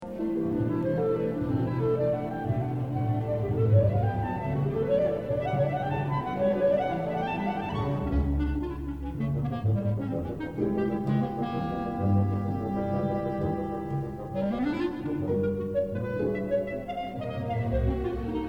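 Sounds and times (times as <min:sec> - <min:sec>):
clarinet: 0:00.0 - 0:18.4.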